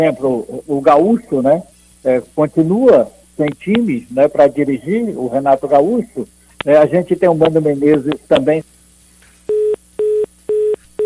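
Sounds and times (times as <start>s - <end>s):
speech: 0.0s - 8.8s
telephone busy tone: 9.5s - 11.0s.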